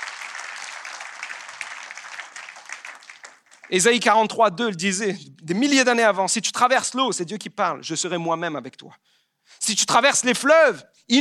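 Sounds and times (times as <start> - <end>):
sustained audience applause: 0.0 - 4.1
speech: 3.7 - 11.1.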